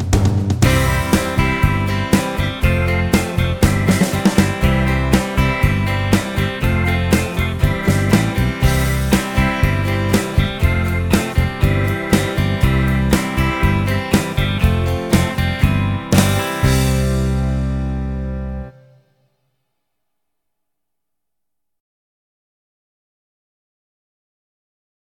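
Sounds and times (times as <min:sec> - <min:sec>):
keyboard backing track: 0:00.2 - 0:18.9.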